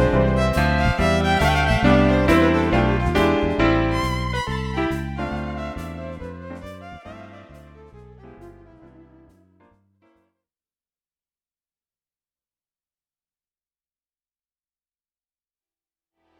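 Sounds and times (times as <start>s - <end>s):
violin: 0.0s - 9.1s
keyboard playing cocktail and dinner music: 0.0s - 9.8s.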